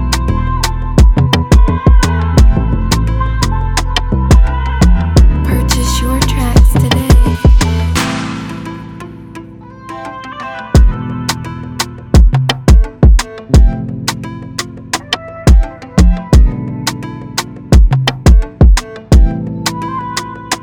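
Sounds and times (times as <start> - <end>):
relaxing instrumental music in C major: 0.0 - 20.6.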